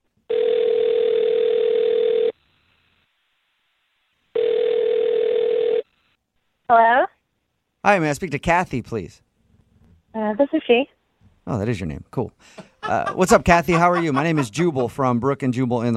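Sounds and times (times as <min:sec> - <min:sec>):
telephone ringing: 0:00.3 - 0:02.4, 0:04.3 - 0:05.9
speech: 0:06.7 - 0:07.1, 0:07.9 - 0:09.3, 0:10.2 - 0:15.9
laughter: 0:12.5 - 0:15.6.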